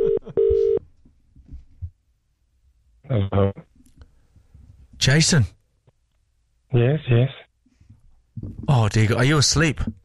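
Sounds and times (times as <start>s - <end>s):
phone line ringing tone as a call is placed: 0.0s - 0.8s
speech: 3.1s - 3.7s, 5.0s - 5.6s, 6.7s - 7.4s, 8.4s - 10.0s.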